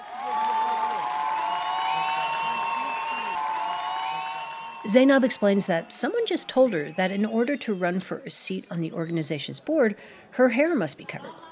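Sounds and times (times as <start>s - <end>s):
crowd cheering: 0.0s - 9.1s
speech: 4.8s - 11.4s.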